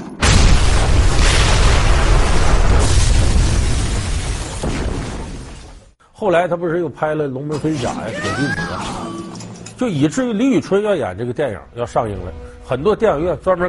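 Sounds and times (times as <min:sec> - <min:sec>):
bomb explosion: 0:00.2 - 0:05.8
speech: 0:06.2 - 0:09.2, 0:09.8 - 0:13.6.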